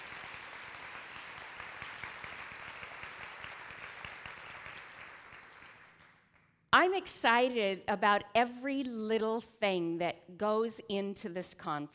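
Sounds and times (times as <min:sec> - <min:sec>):
crowd applauding: 0:00.0 - 0:06.5
speech: 0:06.8 - 0:11.9.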